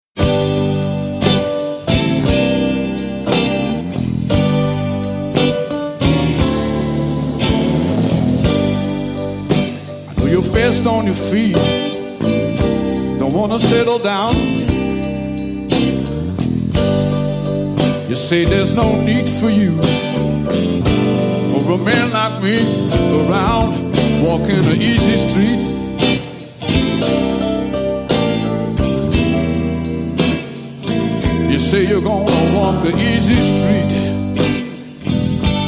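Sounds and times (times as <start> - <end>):
blues music: 0.1 - 35.6.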